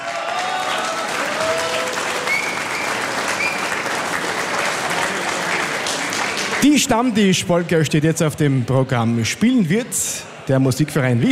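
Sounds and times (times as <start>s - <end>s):
audience applause: 0.0s - 7.2s
speech: 6.6s - 11.3s.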